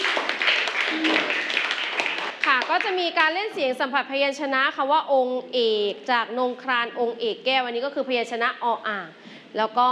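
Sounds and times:
classroom group clapping for a student group: 0.0s - 3.5s
murmur of voices: 0.9s - 1.6s
speech: 2.7s - 9.9s.

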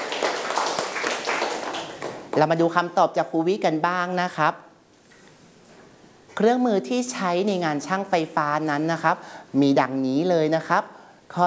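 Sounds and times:
children clapping for a classmate: 0.0s - 2.4s
speech: 2.4s - 4.7s, 6.4s - 11.4s.

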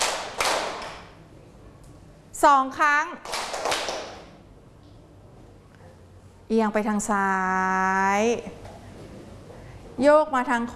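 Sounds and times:
group clapping hands: 0.0s - 1.2s, 3.2s - 4.4s
speech: 2.4s - 3.9s, 6.5s - 8.6s, 10.0s - 10.7s.

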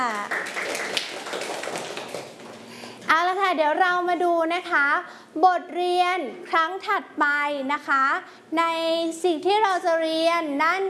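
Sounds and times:
children clapping: 0.0s - 2.6s
speech: 3.5s - 10.8s.

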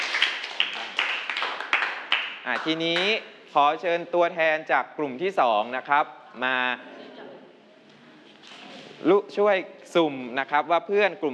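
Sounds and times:
audience clapping: 0.0s - 3.2s
speech: 2.5s - 7.0s, 9.0s - 11.3s.

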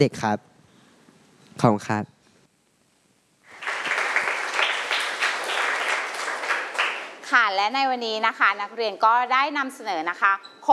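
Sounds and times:
speech: 0.0s - 0.5s, 1.6s - 2.1s, 7.5s - 10.7s
class of students clapping for fellow student presenters: 3.5s - 7.4s.

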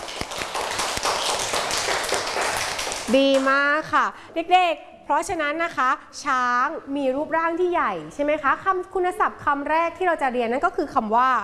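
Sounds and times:
children clapping: 0.0s - 3.5s
speech: 3.1s - 11.4s.

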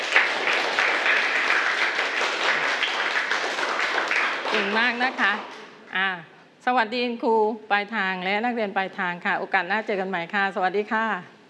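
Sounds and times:
students applauding: 0.0s - 5.7s
speech: 4.6s - 11.3s.

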